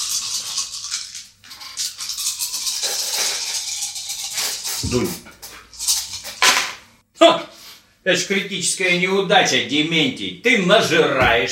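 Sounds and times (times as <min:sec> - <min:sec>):
dice rattling in a cup: 0:00.0 - 0:04.8
speech: 0:04.8 - 0:05.3, 0:08.0 - 0:11.4.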